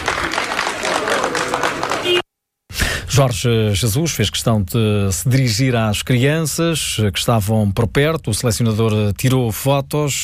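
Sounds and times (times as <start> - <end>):
applause from fans: 0.0 - 2.2
speech: 3.2 - 10.2.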